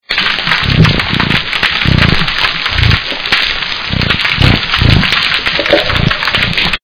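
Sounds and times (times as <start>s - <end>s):
croaking: 0.2s - 6.8s.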